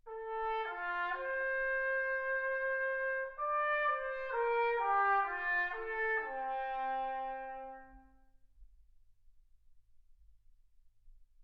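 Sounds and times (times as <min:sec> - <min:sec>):
trumpet: 0:00.0 - 0:08.4.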